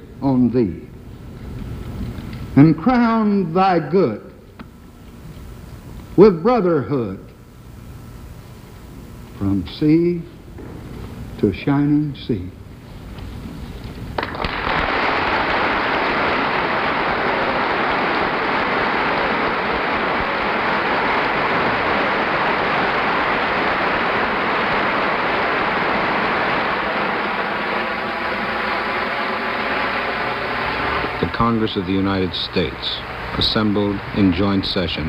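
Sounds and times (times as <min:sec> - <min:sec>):
speech: 0:00.2 - 0:00.9, 0:02.6 - 0:04.3, 0:06.2 - 0:07.3, 0:09.4 - 0:10.3, 0:11.4 - 0:12.6, 0:31.6 - 0:35.0
standing ovation applause in Congress: 0:14.2 - 0:34.9.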